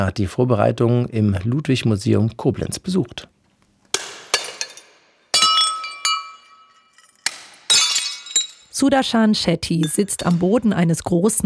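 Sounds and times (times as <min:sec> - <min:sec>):
speech: 0:00.0 - 0:03.3, 0:08.8 - 0:11.4
hammer smashing porcelain cups and plates: 0:03.9 - 0:08.8.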